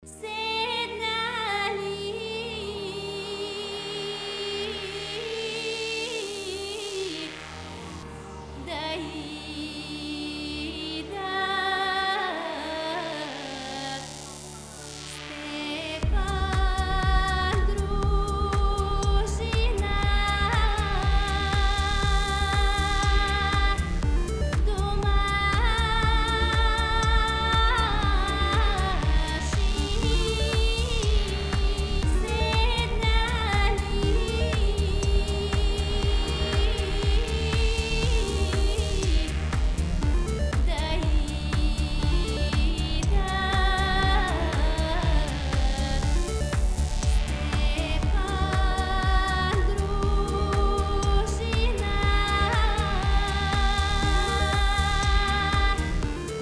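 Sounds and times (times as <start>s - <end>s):
Indian mood music: 0.0s - 56.4s.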